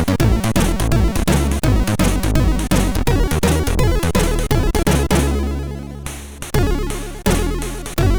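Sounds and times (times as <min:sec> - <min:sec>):
MOS6581R2 SID sound chip: 0:00.0 - 0:08.1.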